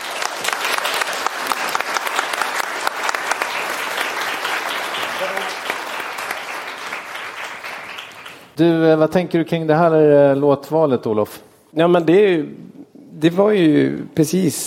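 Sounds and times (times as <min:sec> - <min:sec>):
audience applause: 0:00.0 - 0:08.6
speech: 0:08.6 - 0:14.6.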